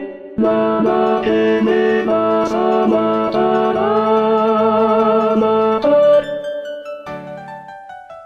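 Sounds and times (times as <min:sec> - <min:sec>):
tenor singing zarzuela seguidillas in Chinchon: 0:00.0 - 0:06.6.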